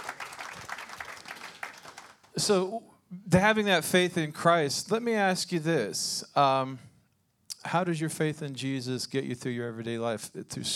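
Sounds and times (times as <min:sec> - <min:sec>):
audience applause: 0:00.0 - 0:02.3
speech: 0:02.4 - 0:06.9, 0:07.6 - 0:10.7.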